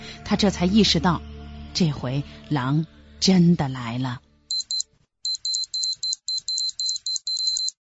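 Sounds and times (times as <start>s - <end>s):
speech: 0.3s - 4.2s
fire alarm buzzers beeping: 4.5s - 7.8s.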